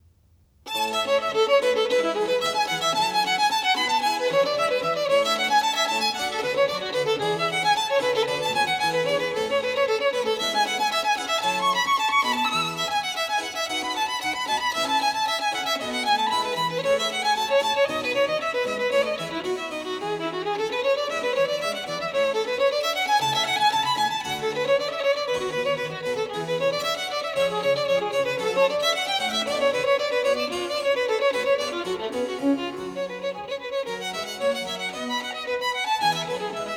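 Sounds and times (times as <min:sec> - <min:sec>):
violin sonata in A major allegro: 0:00.7 - 0:36.7.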